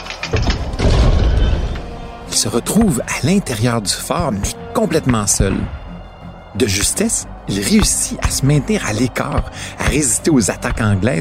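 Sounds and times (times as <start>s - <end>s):
fort gate slamming shut: 0.1s - 1.9s
speech: 2.4s - 5.8s, 6.6s - 11.1s.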